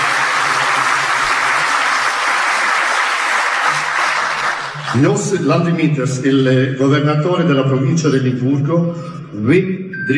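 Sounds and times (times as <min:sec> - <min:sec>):
crowd applause: 0:00.0 - 0:05.5
speech: 0:05.0 - 0:10.1.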